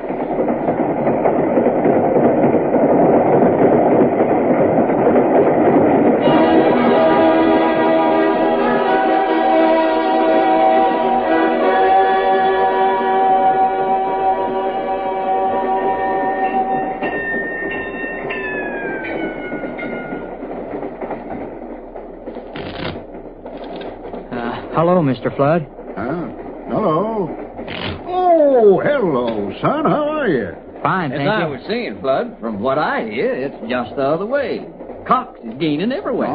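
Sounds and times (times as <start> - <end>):
train rumbling on rails: 0.0 - 36.3
train whistle chord: 6.2 - 17.0
speech: 25.0 - 25.7, 29.0 - 36.3.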